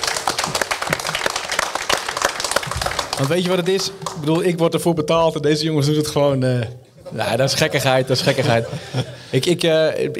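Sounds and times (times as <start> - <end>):
small group applauding: 0.0 - 4.6
laughter: 0.4 - 1.5, 7.0 - 9.5
speech: 3.2 - 10.1.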